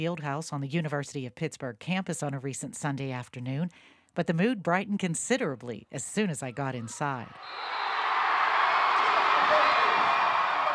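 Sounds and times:
speech: 0:00.0 - 0:07.9
crowd cheering at Fitzgerald Fieldhouse volleyball match: 0:06.7 - 0:10.7.

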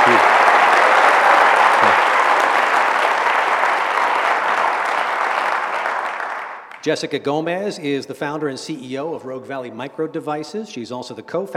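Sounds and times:
audience applause welcoming a speaker onto the stage: 0:00.0 - 0:06.8
speech: 0:06.8 - 0:11.5.

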